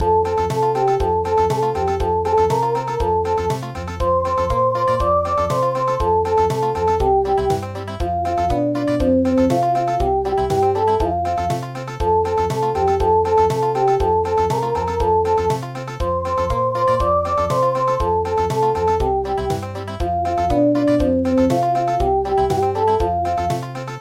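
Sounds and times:
country music: 0.0 - 23.9.

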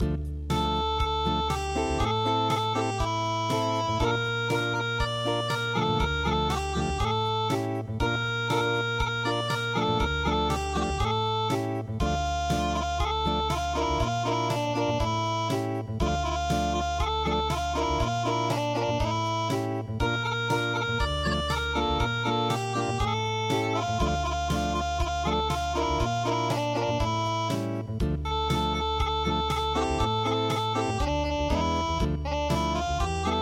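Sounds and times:
unplugged music: 0.0 - 33.4.

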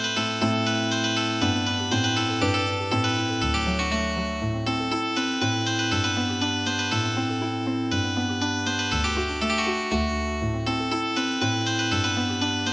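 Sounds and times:
healing harp music: 0.0 - 12.7.

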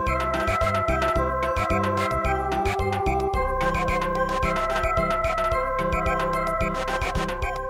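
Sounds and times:
samba music: 0.1 - 7.6.

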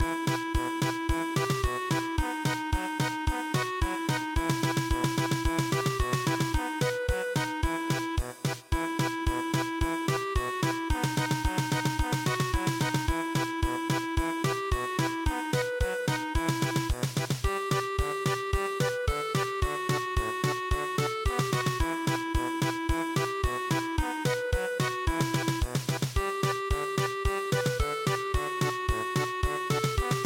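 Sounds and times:
polka music: 0.0 - 30.2.

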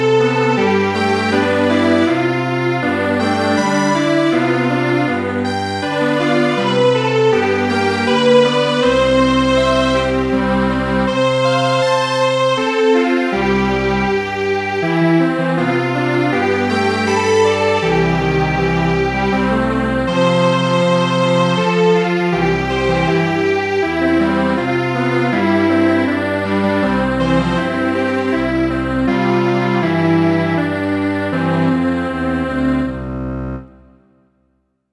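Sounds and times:
MIDI string quartet playing a traditional lullaby: 0.0 - 33.7.

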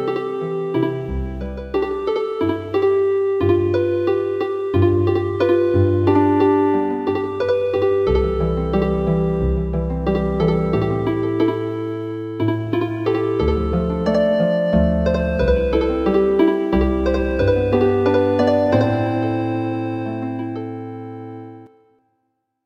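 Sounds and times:
traditional harp music: 0.0 - 21.7.

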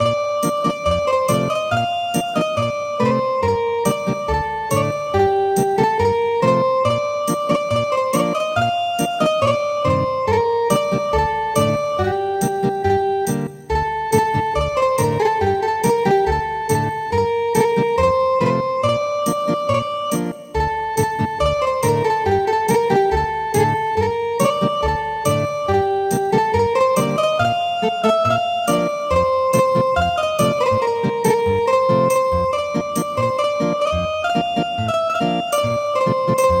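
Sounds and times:
ethnic guitar music: 0.0 - 36.5.

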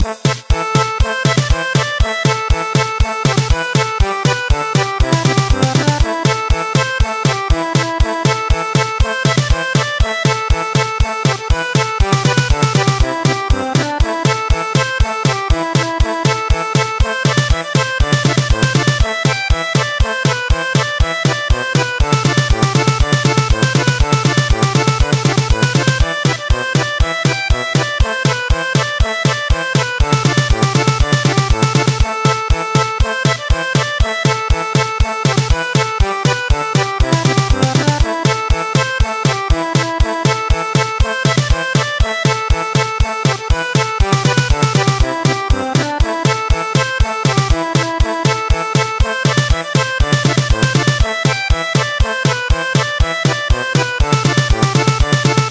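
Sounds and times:
German polka music: 0.0 - 55.4.

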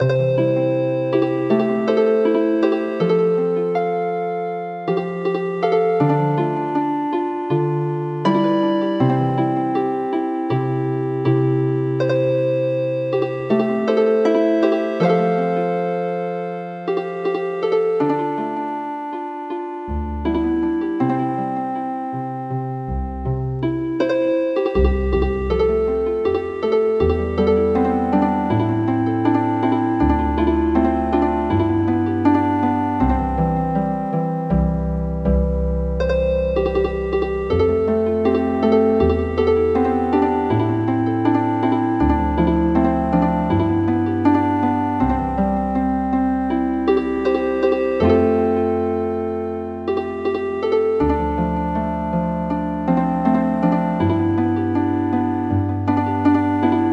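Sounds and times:
healing harp: 0.0 - 56.9.

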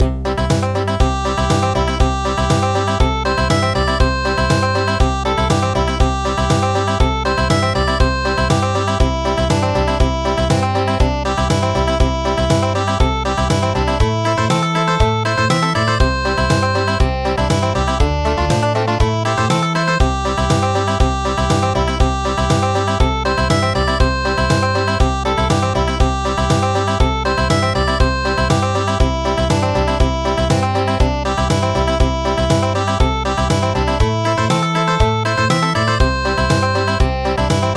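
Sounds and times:
country music: 0.0 - 37.7.

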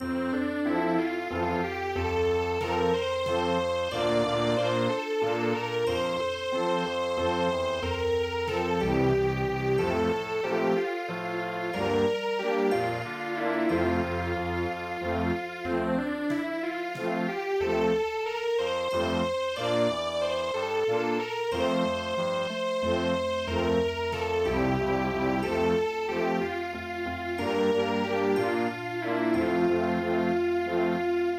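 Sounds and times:
Viennese waltz music: 0.0 - 31.3.

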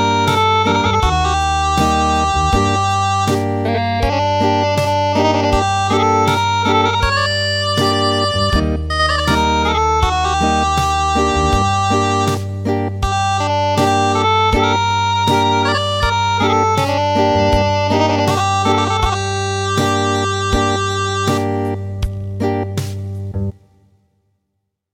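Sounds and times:
acoustic traditional music: 0.0 - 23.6.

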